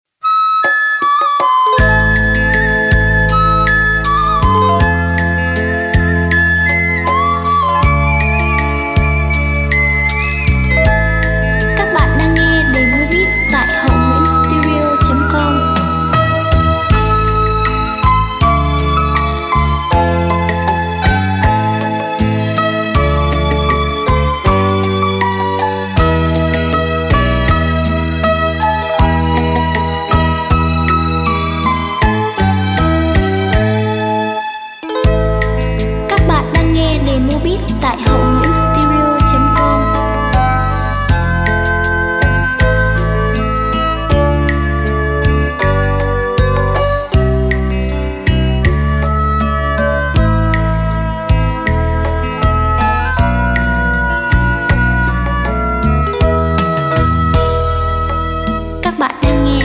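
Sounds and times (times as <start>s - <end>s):
music beat playback: 0.5s - 34.4s, 35.0s - 59.6s.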